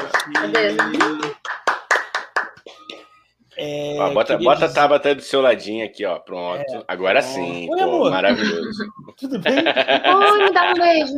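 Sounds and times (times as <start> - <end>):
hand clapping: 0.0 - 3.1
speech: 0.3 - 1.4, 3.6 - 11.1
laughter: 7.7 - 11.1.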